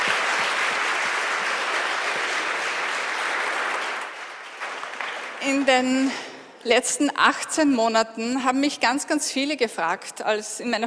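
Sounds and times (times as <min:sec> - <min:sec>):
audience applause: 0:00.0 - 0:05.4
speech: 0:05.5 - 0:10.8.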